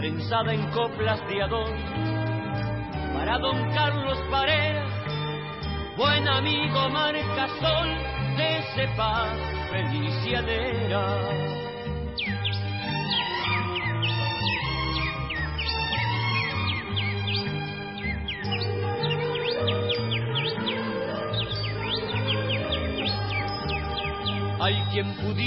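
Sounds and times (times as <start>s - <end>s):
speech: 0.0s - 5.0s, 6.0s - 11.6s, 24.6s - 25.4s
birds singing and whistling: 0.0s - 25.4s
low musical accompaniment: 0.0s - 25.4s.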